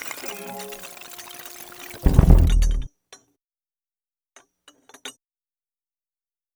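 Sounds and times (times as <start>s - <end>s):
all stems of the source version before individual processing: 0.2s - 2.9s.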